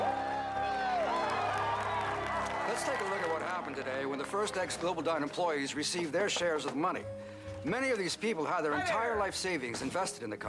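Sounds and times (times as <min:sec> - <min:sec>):
excited crowd of former GlobalDyne employees cheering as pensions are repaid: 0:00.0 - 0:05.5
speech: 0:02.8 - 0:10.4.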